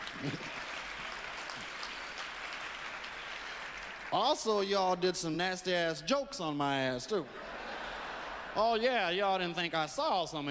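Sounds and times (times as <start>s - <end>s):
audience applause: 0.0s - 4.7s
speech: 0.2s - 0.5s, 4.1s - 7.5s, 8.5s - 10.5s
laughter: 7.2s - 9.2s.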